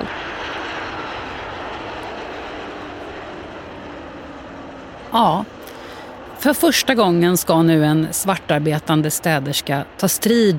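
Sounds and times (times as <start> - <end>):
airplane landing at Arlanda airport: 0.0 - 10.5
speech: 5.1 - 5.6, 6.4 - 10.5.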